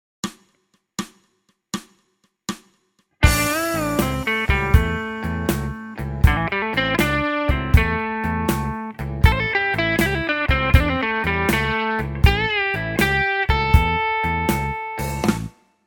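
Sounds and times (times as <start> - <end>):
blues music: 3.2 - 15.6.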